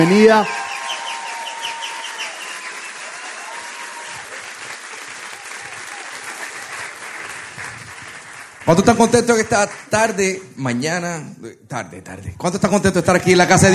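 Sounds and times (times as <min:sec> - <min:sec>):
speech: 0:00.0 - 0:00.6, 0:08.7 - 0:13.7
loud audience applause: 0:00.0 - 0:10.4.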